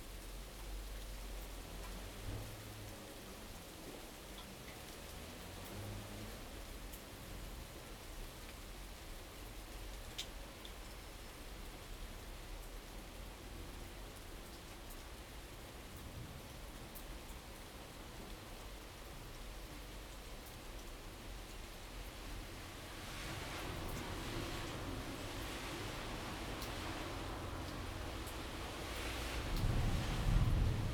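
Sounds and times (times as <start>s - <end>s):
rain in the city: 0.0s - 30.9s
thunder in the city: 29.5s - 30.9s.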